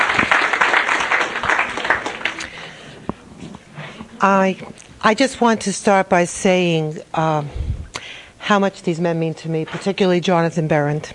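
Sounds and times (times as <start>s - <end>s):
audience applause: 0.0s - 2.7s
speech: 4.2s - 7.6s, 8.5s - 11.1s.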